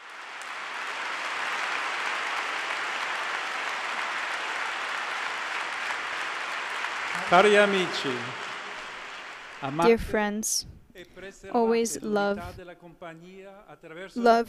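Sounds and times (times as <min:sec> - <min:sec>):
large crowd applause: 0:00.0 - 0:09.9
speech: 0:07.3 - 0:08.4, 0:09.6 - 0:14.4.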